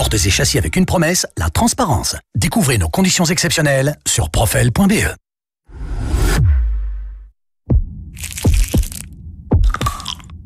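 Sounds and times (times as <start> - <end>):
speech: 0.1 - 5.2
swelling low rumble: 5.8 - 10.4
deep booming heartbeat sound effect: 7.7 - 10.1
crisp crackling noise: 8.2 - 10.3.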